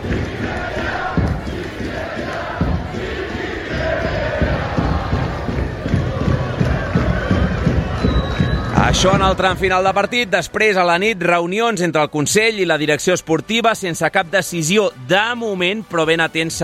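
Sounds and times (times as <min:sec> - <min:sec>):
stadium crowd roaring and shouting at the bench: 0:00.0 - 0:11.3
speech: 0:08.9 - 0:16.6.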